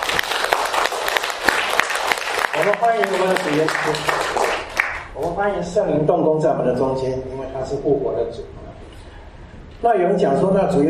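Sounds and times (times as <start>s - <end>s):
church congregation clapping during a service: 0.0s - 5.4s
speech: 2.6s - 4.2s, 5.2s - 8.6s, 9.8s - 10.8s.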